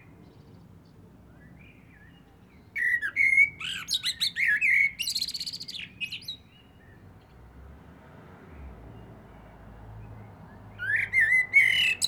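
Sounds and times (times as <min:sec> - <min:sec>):
common blackbird Turdus merula singing: 0:01.4 - 0:07.0, 0:10.5 - 0:12.0.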